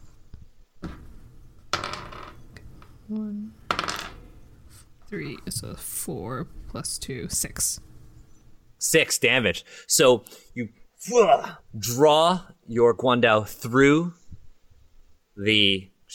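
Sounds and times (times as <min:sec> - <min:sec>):
dice rolled on a table for damage in a Dungeons & Dragons game: 0:01.6 - 0:02.9, 0:03.7 - 0:04.4
speech: 0:03.1 - 0:03.6, 0:05.1 - 0:07.9, 0:08.8 - 0:14.2, 0:15.4 - 0:16.1.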